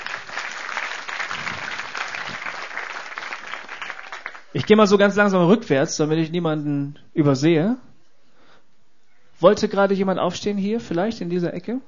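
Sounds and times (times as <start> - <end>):
audience applause: 0.0 - 4.8
speech: 4.6 - 7.9, 9.4 - 11.8.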